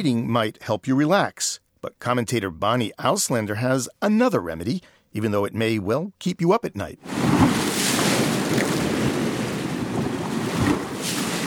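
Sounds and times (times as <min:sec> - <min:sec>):
speech: 0:00.0 - 0:08.8
waves breaking on the shore: 0:07.0 - 0:11.4.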